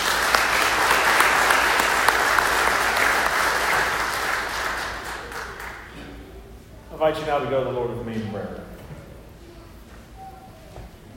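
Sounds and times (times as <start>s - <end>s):
crowd applauding: 0.0s - 6.0s
speech: 7.0s - 8.6s.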